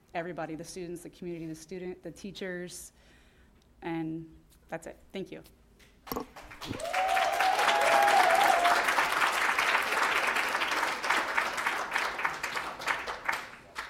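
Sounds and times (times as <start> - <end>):
speech: 0.2 - 3.2, 3.8 - 7.0
audience applause: 6.4 - 13.8.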